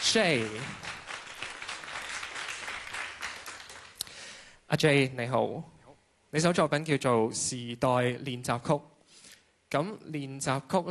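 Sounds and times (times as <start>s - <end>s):
audience applause welcoming a performer on stage: 0.0s - 4.0s
speech: 0.1s - 0.9s, 4.7s - 5.7s, 6.3s - 8.9s, 9.7s - 10.8s.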